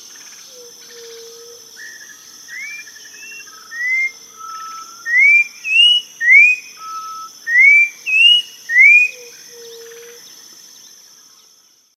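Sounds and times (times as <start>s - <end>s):
bird giving clear whistled notes: 2.6s - 9.9s.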